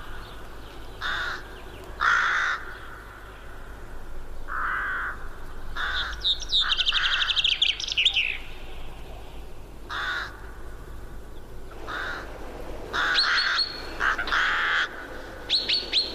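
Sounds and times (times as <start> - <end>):
birds calling harshly in a forest with crow-like rasp: 0.0 - 3.7, 4.5 - 10.6, 11.7 - 16.1
birds chirping and tweeting in a forest: 0.0 - 16.1.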